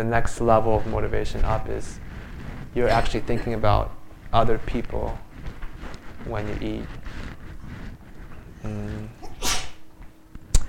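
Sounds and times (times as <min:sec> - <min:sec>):
speech: 0:00.0 - 0:05.3, 0:06.2 - 0:07.2, 0:08.6 - 0:09.2
person sneezing: 0:09.2 - 0:09.8.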